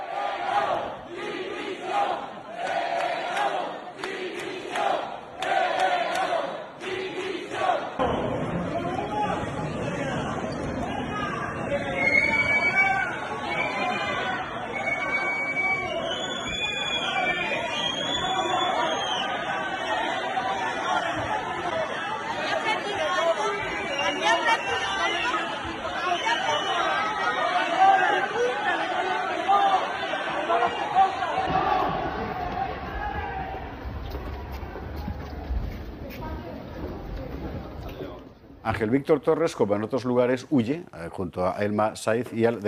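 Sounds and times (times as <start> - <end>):
crowd shouting and jeering at government delegation: 0.0 - 35.8
whistles: 11.6 - 19.4, 23.7 - 25.4, 26.0 - 27.4
speech: 38.8 - 42.6.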